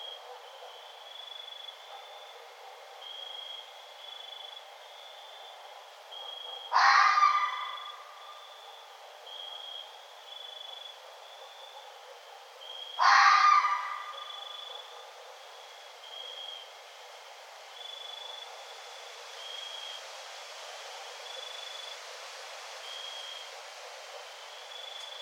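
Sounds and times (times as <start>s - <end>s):
red fox calling: 6.7s - 8.2s, 13.0s - 15.0s.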